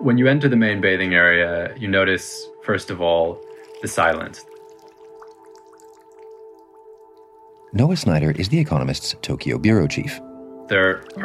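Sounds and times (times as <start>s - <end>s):
speech: 0.0s - 4.5s, 7.7s - 11.2s
water dripping in a bathhouse: 3.0s - 11.2s.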